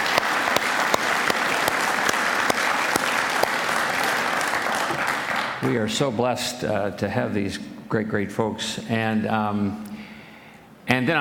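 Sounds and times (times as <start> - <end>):
sharp individual claps: 0.0 - 5.6
audience applauding a contemporary worship team: 0.0 - 5.7
speech: 5.6 - 9.9, 10.9 - 11.1.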